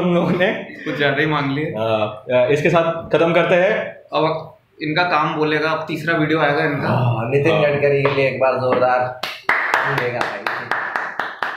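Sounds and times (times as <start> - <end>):
speech: 0.0 - 10.4
hand claps: 8.0 - 11.5.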